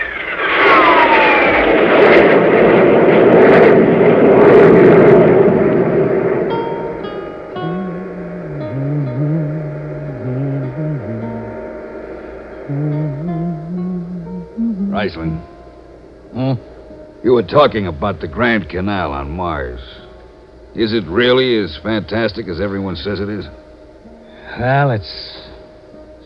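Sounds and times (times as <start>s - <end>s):
spaceship jet engines roaring sound effect: 0.0s - 15.2s
speech: 15.1s - 15.4s, 17.5s - 20.0s, 20.7s - 23.6s, 24.5s - 25.4s.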